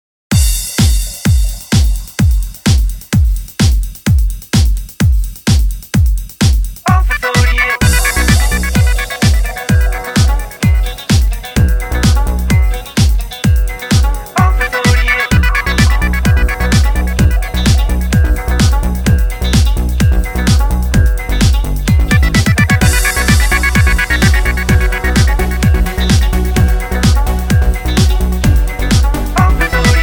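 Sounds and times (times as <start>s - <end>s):
remix music: 0.3s - 30.0s.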